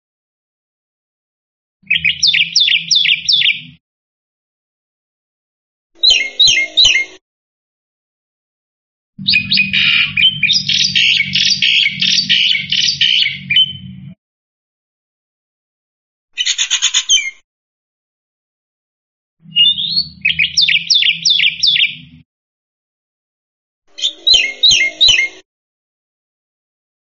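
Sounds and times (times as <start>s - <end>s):
black-winged myna chirping: 1.8s - 3.8s, 6.0s - 7.2s, 9.2s - 13.9s, 16.4s - 17.4s, 19.4s - 22.2s, 23.9s - 25.4s.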